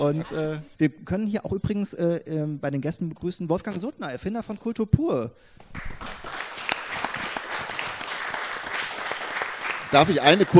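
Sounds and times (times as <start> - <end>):
speech: 0.0 - 6.2, 9.9 - 10.5
audience applause: 5.7 - 10.5.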